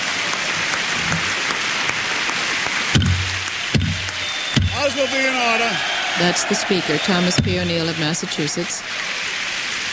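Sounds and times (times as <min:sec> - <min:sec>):
large crowd applauding in a legislative chamber: 0:00.0 - 0:09.3
heavy resonant thumps: 0:03.0 - 0:04.8, 0:07.3 - 0:07.8
speech: 0:05.0 - 0:09.3.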